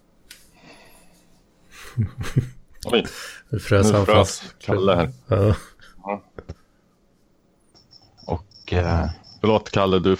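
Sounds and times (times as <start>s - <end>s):
laughter: 1.8s - 2.6s, 5.0s - 6.6s
speech: 2.0s - 6.6s, 8.3s - 10.1s
crickets chirping: 7.7s - 10.1s.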